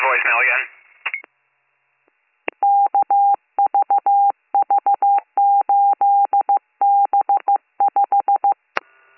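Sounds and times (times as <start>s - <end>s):
speech: 0.2s - 1.2s
telephone dialing tones: 2.6s - 8.6s.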